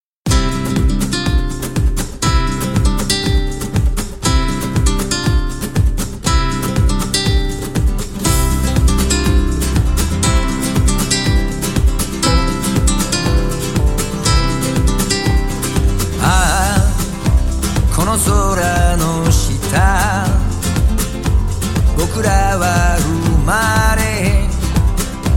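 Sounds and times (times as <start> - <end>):
rumba music: 0.3 - 25.3.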